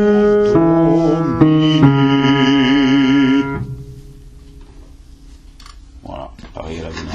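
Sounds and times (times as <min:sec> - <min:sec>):
double basses playing adagio: 0:00.0 - 0:05.2.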